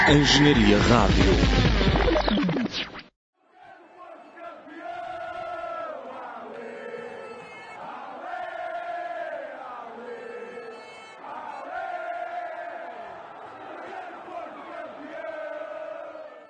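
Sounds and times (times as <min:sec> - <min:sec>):
speech: 0:00.1 - 0:01.6
football supporters chanting a rallying cry: 0:03.4 - 0:16.4.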